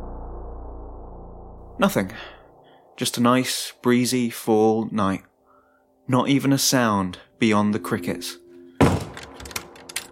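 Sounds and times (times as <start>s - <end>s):
speech: 1.8s - 2.4s, 3.0s - 5.3s, 6.1s - 8.4s
door slammed shut: 8.8s - 9.8s.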